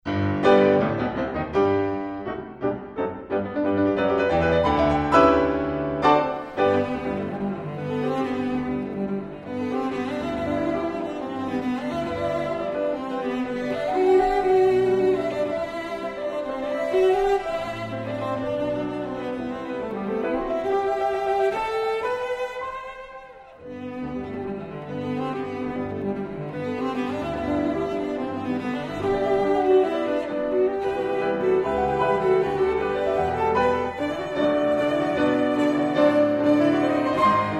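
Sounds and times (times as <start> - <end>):
cello and piano sonata: 0.0 - 37.5.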